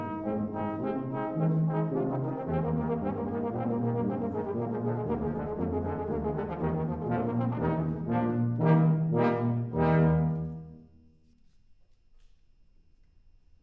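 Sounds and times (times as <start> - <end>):
trombone: 0.0 - 10.8.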